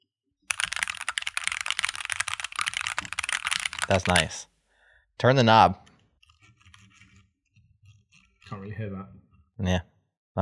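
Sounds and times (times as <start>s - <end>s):
typing on a clicky computer keyboard: 0.5s - 4.4s
speech: 3.9s - 4.5s, 5.2s - 5.8s, 8.7s - 10.3s.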